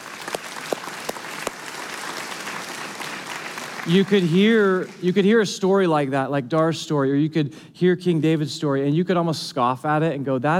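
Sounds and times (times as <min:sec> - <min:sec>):
audience clapping and applauding: 0:00.0 - 0:05.2
speech: 0:03.8 - 0:10.5.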